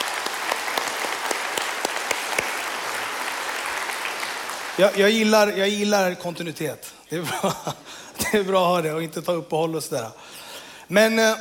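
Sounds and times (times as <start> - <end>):
audience clapping: 0.0 - 5.9
speech: 4.8 - 11.4.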